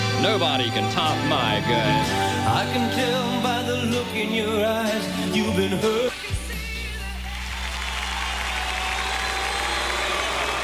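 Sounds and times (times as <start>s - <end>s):
speech: 0.2s - 6.1s
applause: 7.3s - 10.6s.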